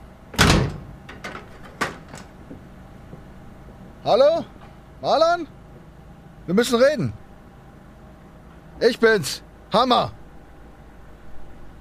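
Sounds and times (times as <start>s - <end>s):
heavy door swinging open: 0.3s - 2.4s
speech: 4.0s - 5.6s, 6.5s - 7.2s, 8.8s - 10.2s.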